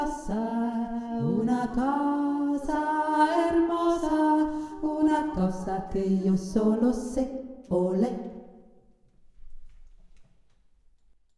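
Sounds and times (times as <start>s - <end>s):
person singing with a deeper voice: 0.0s - 8.5s.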